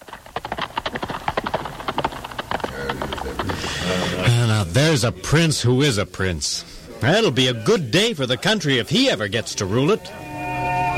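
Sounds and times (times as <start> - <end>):
horse hooves trotting as a prince rides out: 0.0 - 4.7
speech: 3.9 - 10.2.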